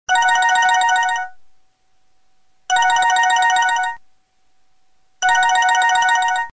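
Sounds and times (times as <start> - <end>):
Huawei G2100 ringtone: 0.1 - 1.4, 2.7 - 4.0, 5.2 - 6.5.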